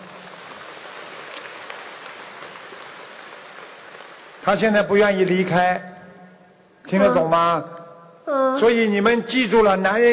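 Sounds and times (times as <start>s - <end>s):
audience applause: 0.0s - 4.8s
speech: 4.4s - 5.9s, 6.9s - 10.1s.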